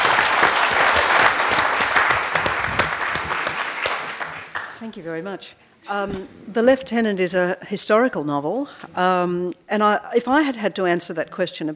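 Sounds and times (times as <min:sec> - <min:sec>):
audience applause: 0:00.0 - 0:04.8
speech: 0:04.8 - 0:11.7.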